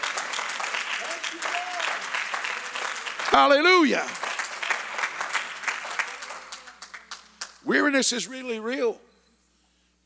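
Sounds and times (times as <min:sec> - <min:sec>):
church congregation clapping: 0:00.0 - 0:08.2
speech: 0:03.3 - 0:04.2, 0:07.7 - 0:09.1.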